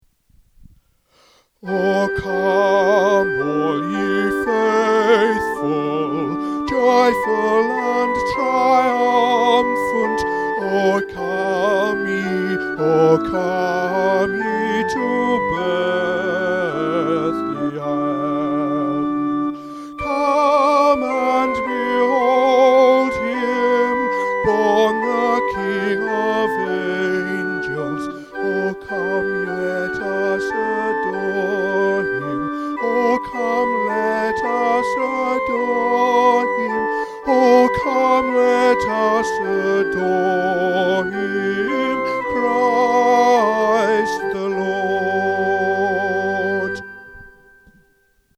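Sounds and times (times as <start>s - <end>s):
soprano singing: 1.6s - 47.8s.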